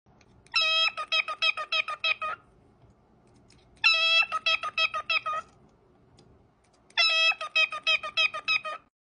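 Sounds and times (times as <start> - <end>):
cockatiel: 0.5 - 2.4, 3.8 - 5.6, 6.9 - 8.9.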